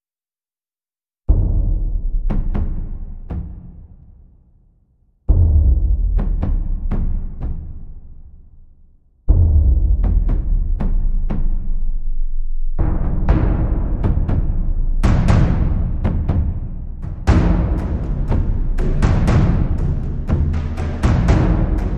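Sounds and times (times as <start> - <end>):
drums: 1.3 - 4.0, 5.3 - 7.8, 9.3 - 12.0, 12.7 - 21.9.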